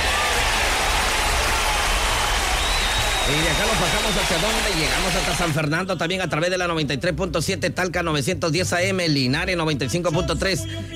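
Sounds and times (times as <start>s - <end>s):
crowd applause: 0.0s - 5.6s
speech: 3.3s - 10.9s.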